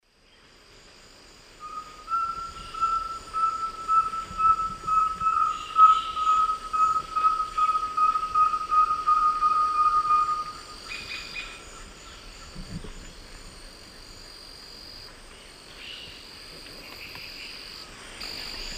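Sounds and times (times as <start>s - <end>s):
rusty-belted tapaculo Liosceles thoracicus whistling: 1.6s - 10.6s.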